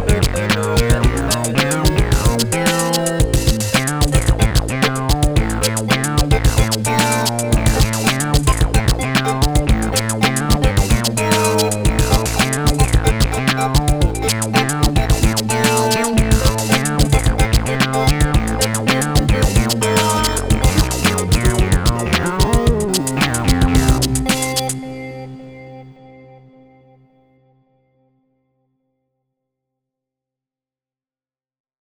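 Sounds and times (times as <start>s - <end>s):
clunky funk music: 0.0s - 24.8s.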